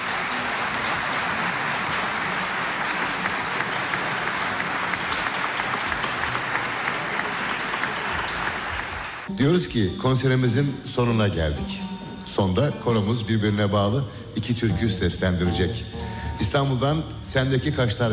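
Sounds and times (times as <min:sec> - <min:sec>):
audience applauding a choir: 0:00.0 - 0:09.3
speech: 0:09.4 - 0:18.1.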